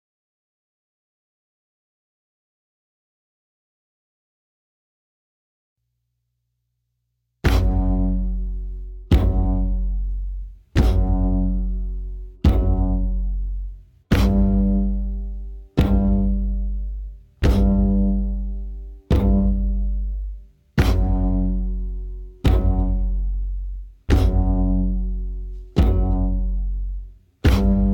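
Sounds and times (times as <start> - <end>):
mountain music diegetic beat layer: 7.4 - 27.9.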